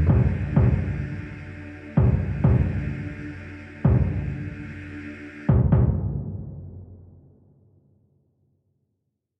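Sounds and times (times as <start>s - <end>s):
epic choral trailer music: 0.0s - 7.3s.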